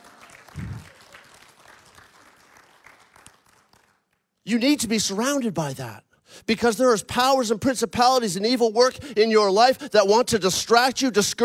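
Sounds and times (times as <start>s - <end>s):
audience clapping: 0.0s - 4.4s
speech: 4.5s - 11.4s.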